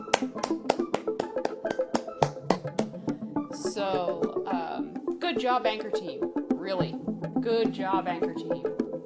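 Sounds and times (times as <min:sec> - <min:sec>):
applause: 0:00.1 - 0:02.3
speech: 0:03.8 - 0:08.9.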